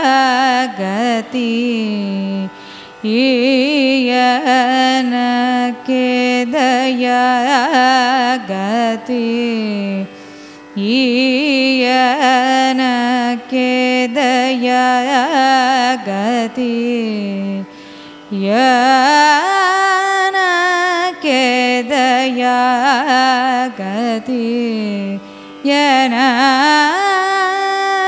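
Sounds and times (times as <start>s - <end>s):
carnatic raga music: 0.0s - 28.0s.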